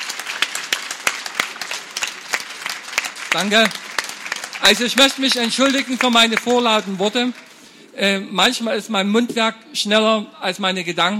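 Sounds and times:
audience applause: 0:00.0 - 0:07.6
speech: 0:03.3 - 0:03.8, 0:04.6 - 0:11.1.

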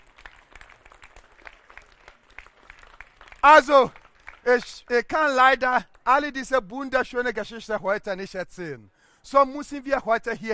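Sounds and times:
audience applause: 0:00.0 - 0:04.5
speech: 0:03.4 - 0:10.5.

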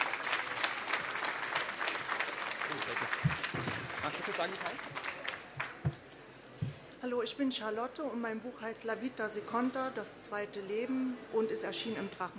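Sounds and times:
audience applause: 0:00.0 - 0:06.0
speech: 0:04.3 - 0:05.2, 0:07.0 - 0:12.3.

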